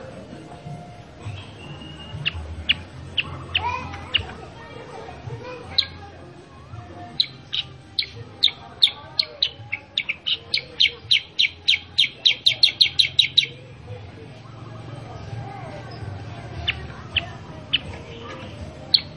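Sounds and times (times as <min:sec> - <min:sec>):
sooty-headed bulbul chattering call: 0:01.3 - 0:04.3, 0:07.1 - 0:13.6, 0:16.6 - 0:19.1.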